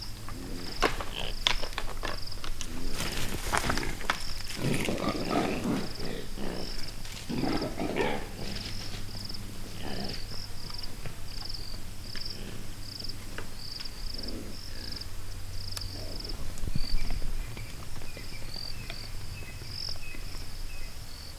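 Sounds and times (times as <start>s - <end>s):
impala fighting with clacking horns: 0.1s - 20.5s.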